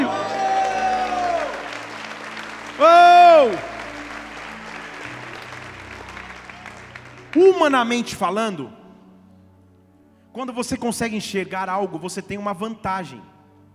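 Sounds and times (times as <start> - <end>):
audience applauding: 0.0 - 8.4
speech: 2.8 - 3.7, 7.4 - 8.8, 10.4 - 13.3.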